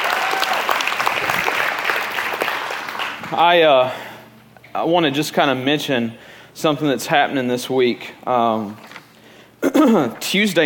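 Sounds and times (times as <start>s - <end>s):
audience clapping: 0.0s - 3.5s
speech: 3.3s - 4.1s, 4.7s - 8.9s, 9.8s - 10.6s.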